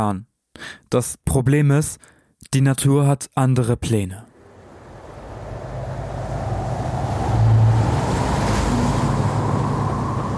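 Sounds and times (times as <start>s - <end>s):
speech: 0.0s - 4.3s
gusting wind: 4.3s - 10.3s
rough Atlantic sea surf: 4.4s - 10.3s.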